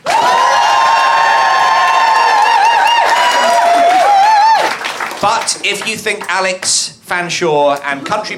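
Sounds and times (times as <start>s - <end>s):
studio audience cheering and whooping: 0.0s - 5.2s
studio audience applause: 0.0s - 6.4s
speech: 5.2s - 8.3s.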